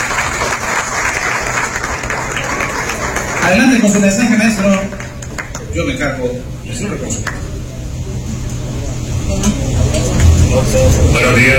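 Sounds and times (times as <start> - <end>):
applause: 0.0 - 5.8, 7.2 - 7.4
speech: 3.5 - 5.0, 5.8 - 7.5, 9.4 - 11.5.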